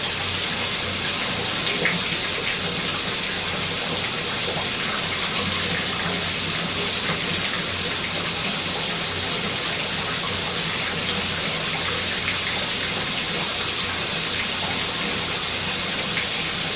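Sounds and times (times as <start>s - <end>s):
water running in a shower: 0.0s - 16.7s.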